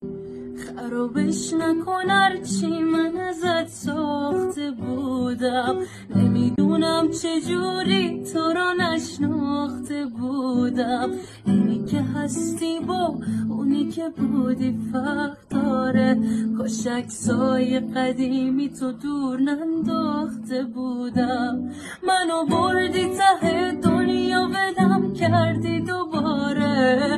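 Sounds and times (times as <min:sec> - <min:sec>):
guitar: 0:00.0 - 0:27.1.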